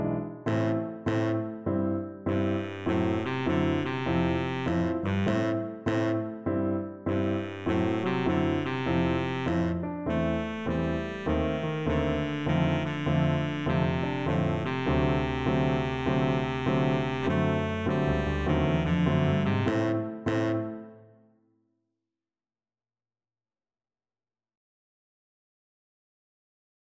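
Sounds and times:
baritone saxophone: 0.5s - 21.0s.

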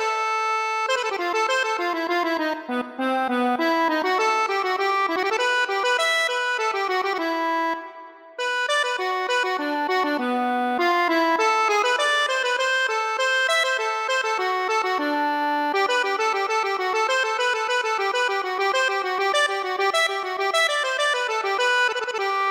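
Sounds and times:
accordion: 0.0s - 22.5s.

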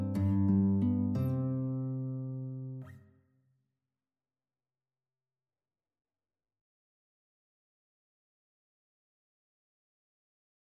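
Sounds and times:
guitar lullaby: 0.0s - 3.1s.

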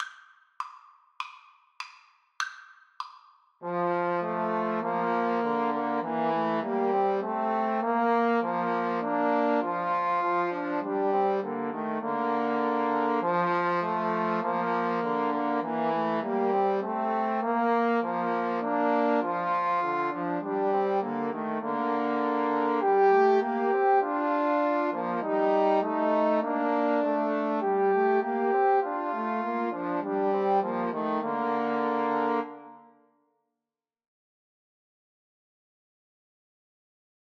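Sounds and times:
trombone trio: 3.6s - 32.6s.

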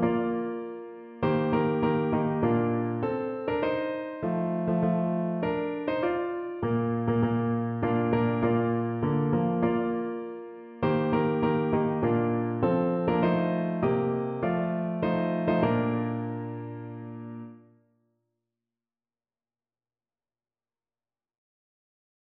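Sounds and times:
hymn played on piano: 0.0s - 17.7s.

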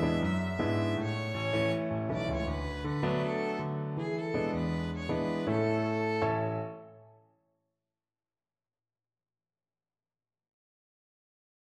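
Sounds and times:
violin: 0.0s - 7.0s.

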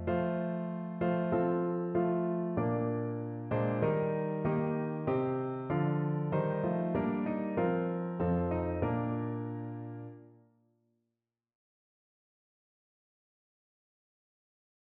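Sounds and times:
piano piece: 0.0s - 10.4s.

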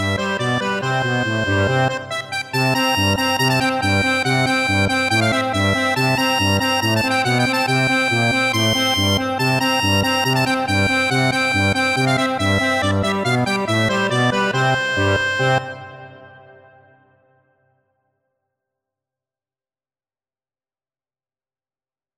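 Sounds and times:
accordion playing a bulgar dance tune: 0.0s - 16.4s.

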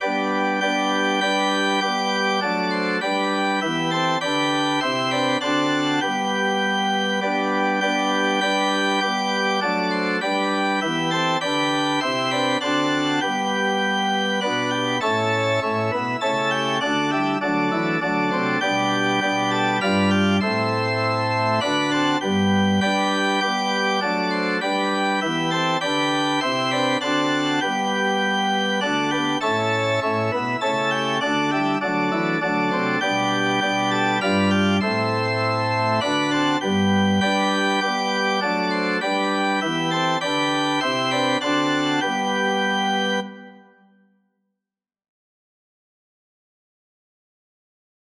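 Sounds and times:
organ: 0.0s - 43.8s.

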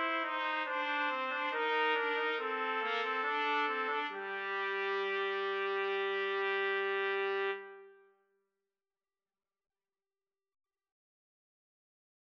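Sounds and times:
trumpet trio playing: 0.0s - 8.0s.

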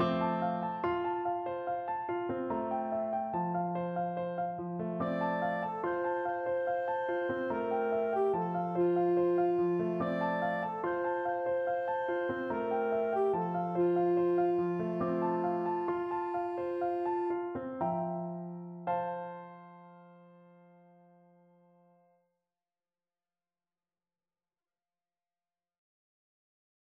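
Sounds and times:
clarinet playing a folk song: 0.0s - 18.6s.

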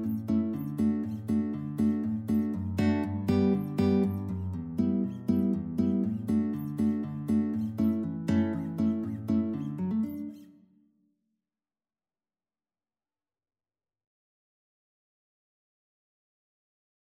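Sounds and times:
guitar playing a storpolska: 0.0s - 10.6s.

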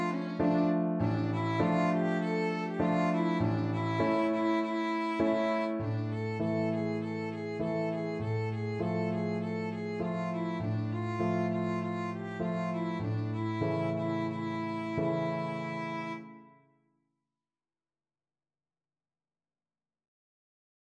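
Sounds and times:
violin: 0.0s - 16.6s.

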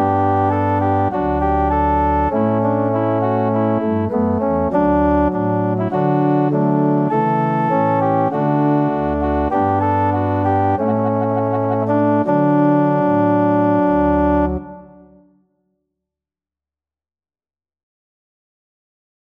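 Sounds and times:
organ: 0.0s - 15.0s.

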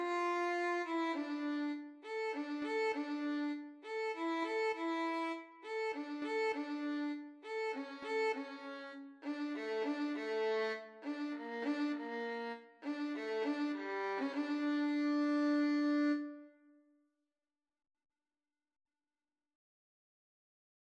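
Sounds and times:
violin and cello duet: 0.0s - 16.4s.

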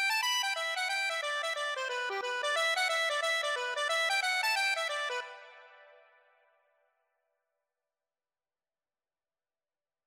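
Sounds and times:
accordion playing a four hand reel: 0.0s - 5.5s.

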